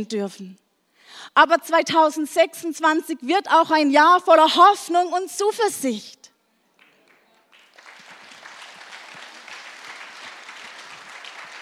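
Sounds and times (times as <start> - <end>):
speech: 0.0 - 6.3
audience applause: 6.8 - 11.6.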